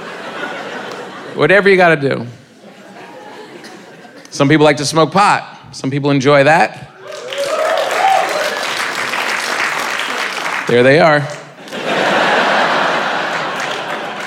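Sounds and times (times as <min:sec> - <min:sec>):
laughter: 0:00.0 - 0:01.6, 0:02.5 - 0:04.3, 0:11.6 - 0:14.2
speech: 0:01.4 - 0:02.4, 0:04.3 - 0:06.9, 0:10.7 - 0:11.4
small audience clapping: 0:07.0 - 0:14.2.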